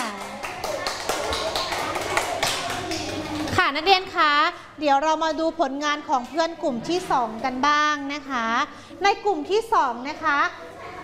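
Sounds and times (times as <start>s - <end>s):
classroom applause: 0.0s - 3.6s
speech: 3.7s - 10.7s.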